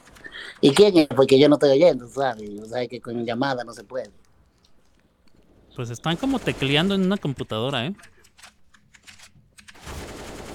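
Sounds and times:
speech: 0:00.4 - 0:04.2, 0:05.8 - 0:08.5
gunfire: 0:05.5 - 0:07.7, 0:09.8 - 0:10.5.

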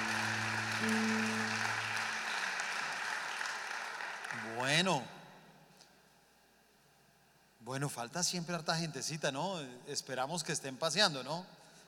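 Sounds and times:
audience applause: 0:00.0 - 0:04.7
speech: 0:00.8 - 0:01.4, 0:04.5 - 0:05.2, 0:07.7 - 0:11.6.

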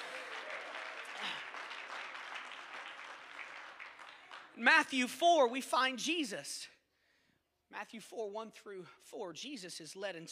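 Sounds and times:
audience clapping hands: 0:00.0 - 0:05.0
speech: 0:04.6 - 0:06.8, 0:07.7 - 0:10.3.

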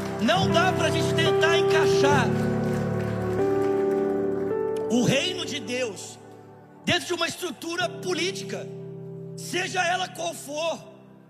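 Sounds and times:
audience applauding: 0:00.0 - 0:05.5
speech: 0:00.2 - 0:02.5, 0:04.9 - 0:06.2, 0:06.8 - 0:08.8, 0:09.4 - 0:10.9.

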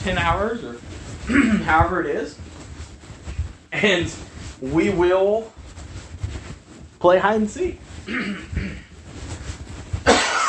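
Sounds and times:
speech: 0:00.0 - 0:02.5, 0:03.7 - 0:05.6, 0:07.0 - 0:08.9
throat sounds: 0:01.2 - 0:01.8, 0:08.0 - 0:08.9
person coughing while choking mid-sentence: 0:01.3 - 0:01.7, 0:08.1 - 0:08.9, 0:10.1 - 0:10.4.

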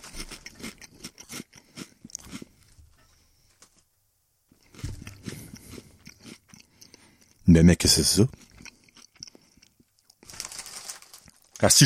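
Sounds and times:
sour cream and onion potato chips being bitten and chewed: 0:00.0 - 0:02.7, 0:04.6 - 0:07.4, 0:08.0 - 0:11.8
speech: 0:07.5 - 0:08.4, 0:11.6 - 0:11.8.

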